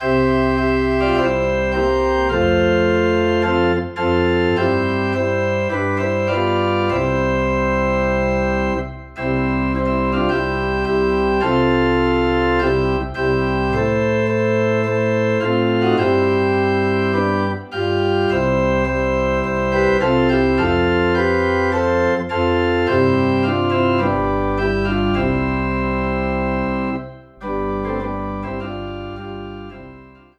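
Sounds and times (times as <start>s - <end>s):
organ in C: 0.0s - 30.3s.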